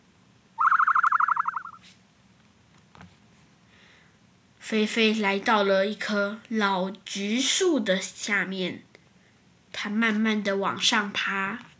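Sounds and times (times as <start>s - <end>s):
birds calling: 0.6s - 1.8s
speech: 4.7s - 8.9s, 9.8s - 11.7s.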